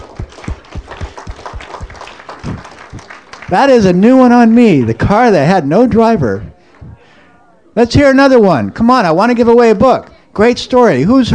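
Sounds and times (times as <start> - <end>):
audience applause: 0.0 - 4.0
speech: 3.5 - 6.5, 7.8 - 11.3.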